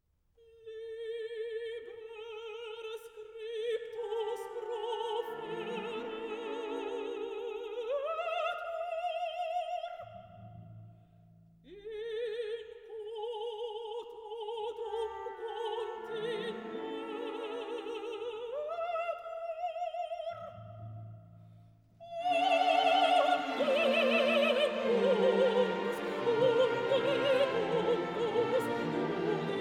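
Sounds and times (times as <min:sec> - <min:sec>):
mezzo-soprano singing: 0:00.5 - 0:10.2, 0:11.7 - 0:20.8, 0:22.0 - 0:29.5
chorus singing: 0:03.8 - 0:08.8, 0:14.6 - 0:18.6, 0:22.1 - 0:29.5.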